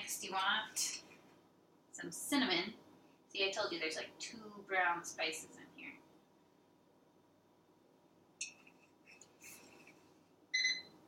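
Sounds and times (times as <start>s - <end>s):
speech: 0.1s - 1.0s, 2.0s - 6.0s
microwave beeping: 10.6s - 11.0s.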